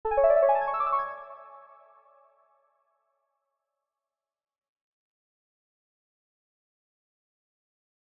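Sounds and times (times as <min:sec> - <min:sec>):
tone: 0:00.1 - 0:01.7.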